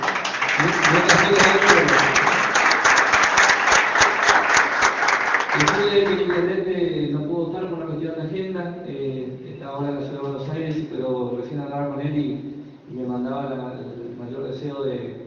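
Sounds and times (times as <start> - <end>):
audience applause: 0.0 - 6.4
person talking: 0.6 - 2.5, 5.6 - 15.0.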